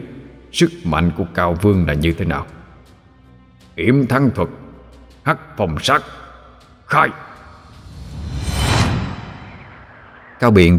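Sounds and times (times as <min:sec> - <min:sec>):
speech: 0:00.5 - 0:02.6, 0:03.8 - 0:04.6, 0:05.2 - 0:06.2, 0:06.9 - 0:07.3, 0:10.4 - 0:10.7
cold dark wind gust sound effect from a magic spell: 0:07.4 - 0:10.7.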